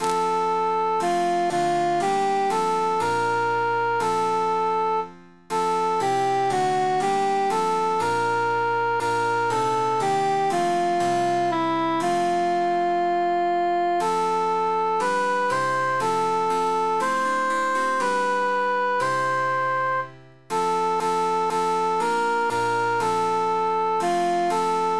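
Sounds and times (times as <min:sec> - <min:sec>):
emphasized cantus melody: 0:00.0 - 0:24.9.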